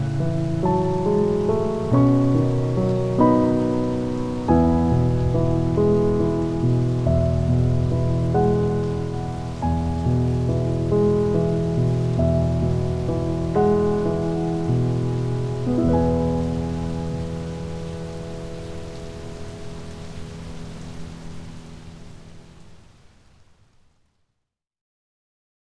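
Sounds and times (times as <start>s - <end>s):
piano: 0.0s - 23.0s
rain: 0.0s - 24.4s.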